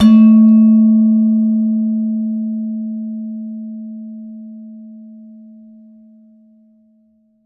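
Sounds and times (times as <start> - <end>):
gender gamelan metallophone: 0.0 - 2.8.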